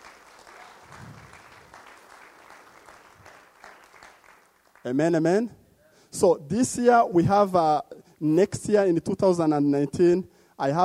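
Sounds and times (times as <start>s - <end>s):
audience clapping: 0.0s - 5.0s
speech: 4.8s - 5.6s, 6.2s - 10.8s.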